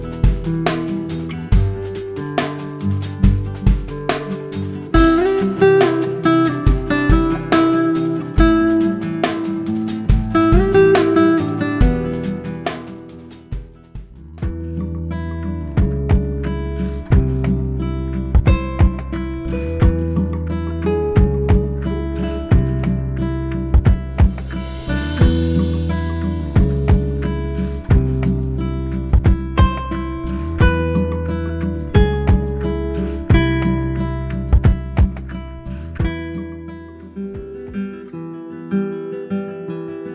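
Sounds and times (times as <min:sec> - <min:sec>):
mellow guitar: 0:00.0 - 0:40.1.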